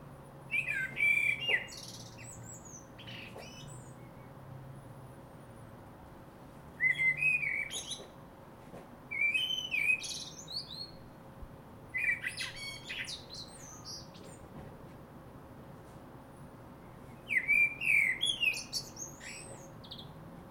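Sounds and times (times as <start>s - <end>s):
Common blackbird singing: 0.5s - 4.3s, 6.8s - 8.2s, 9.1s - 11.1s, 11.9s - 14.5s, 17.1s - 20.2s.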